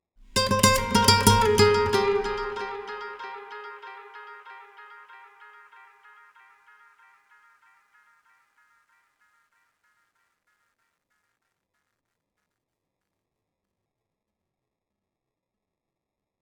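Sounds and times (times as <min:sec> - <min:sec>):
acoustic guitar one-shot: 0:00.2 - 0:05.4.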